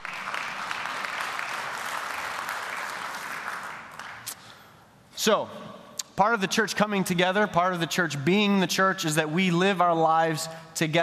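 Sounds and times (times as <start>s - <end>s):
audience clapping hands: 0.0s - 4.6s
speech: 5.2s - 11.0s.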